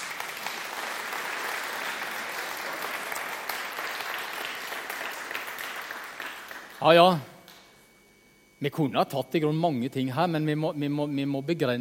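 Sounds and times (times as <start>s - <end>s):
applause: 0.0s - 7.6s
speech: 6.8s - 7.3s, 8.6s - 11.7s.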